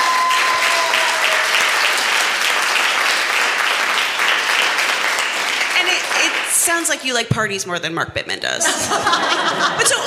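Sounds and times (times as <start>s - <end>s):
audience applause: 0.0s - 6.6s
speech: 6.7s - 10.0s
laughter: 8.6s - 10.0s.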